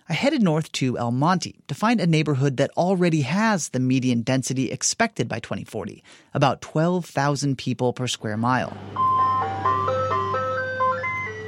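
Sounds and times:
speech: 0:00.1 - 0:09.3
ice cream truck jingle on a street in El Monte: 0:08.8 - 0:11.4.

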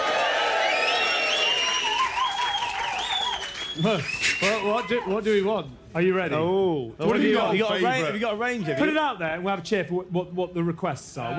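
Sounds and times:
crowd clapping: 0:00.0 - 0:05.2
speech: 0:03.8 - 0:11.3.

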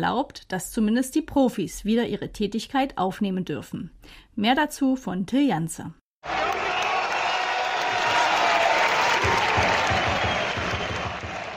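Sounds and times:
speech: 0:00.0 - 0:06.4
rhythmic thumping claps or chants: 0:06.2 - 0:11.5
stadium crowd cheering at football match: 0:06.2 - 0:11.5.

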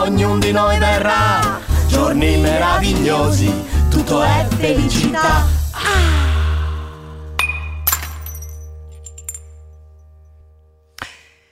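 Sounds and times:
speech: 0:00.0 - 0:06.3
drinking glass smashing: 0:07.4 - 0:09.7
glass shards clinking: 0:07.4 - 0:09.7.

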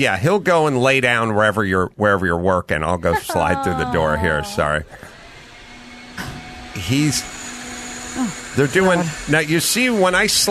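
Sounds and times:
speech: 0:00.0 - 0:05.1, 0:06.2 - 0:07.4, 0:08.2 - 0:10.4
laughter: 0:02.8 - 0:05.1
wet saw cutting outside: 0:06.7 - 0:10.4.

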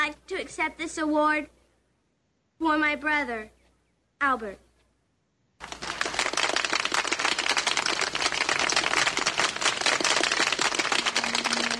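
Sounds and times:
speech: 0:00.1 - 0:01.6, 0:02.6 - 0:03.6, 0:04.2 - 0:04.6
sparse clapping from a few people: 0:05.6 - 0:11.7.

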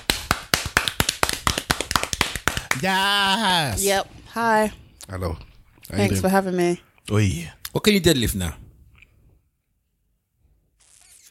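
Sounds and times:
few people clapping hands: 0:00.0 - 0:03.0
speech: 0:02.8 - 0:08.6.

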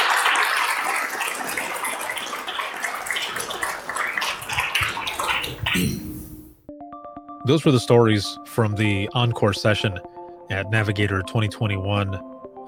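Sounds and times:
audience applause: 0:00.0 - 0:05.6
speech: 0:07.5 - 0:12.6.

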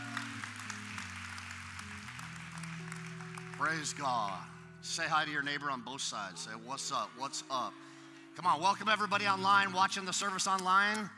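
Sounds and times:
audience clapping together: 0:00.0 - 0:04.5
sustained low keyboard chords: 0:00.0 - 0:11.1
speech: 0:03.6 - 0:11.1.

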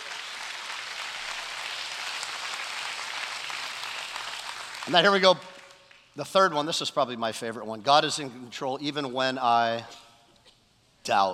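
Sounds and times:
audience clapping together: 0:00.0 - 0:06.2
speech: 0:04.8 - 0:05.5, 0:06.2 - 0:10.0, 0:11.0 - 0:11.3.

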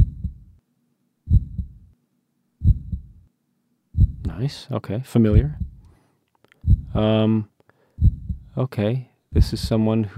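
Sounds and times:
recorded heartbeat: 0:00.0 - 0:00.5, 0:01.3 - 0:01.9, 0:02.6 - 0:03.2, 0:04.0 - 0:04.4, 0:05.3 - 0:05.9, 0:06.6 - 0:07.1, 0:08.0 - 0:08.6
speech: 0:04.4 - 0:05.6, 0:07.0 - 0:07.5, 0:08.6 - 0:10.1.

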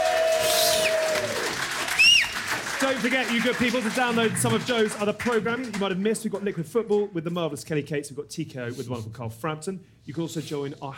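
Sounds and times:
live audience cheering and applauding: 0:00.0 - 0:05.1
speech: 0:02.9 - 0:10.9.

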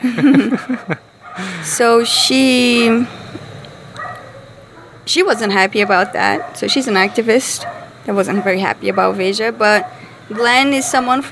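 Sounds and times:
laughter: 0:00.0 - 0:01.7
speech: 0:00.0 - 0:03.2, 0:05.1 - 0:11.3
Andy the dog barking and whining: 0:00.8 - 0:01.5, 0:02.1 - 0:02.6, 0:04.0 - 0:11.2.

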